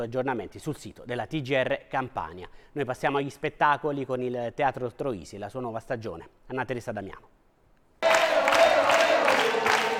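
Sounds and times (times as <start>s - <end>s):
speech: 0.0s - 7.4s
stadium-style crowd cheering in the Teatro Troisi theater hall: 8.0s - 9.9s.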